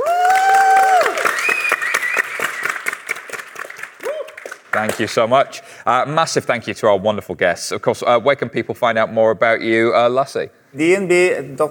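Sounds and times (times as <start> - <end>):
crowd cheering: 0.0 - 4.6
rapid clapping: 0.2 - 5.1
speech: 4.8 - 11.6.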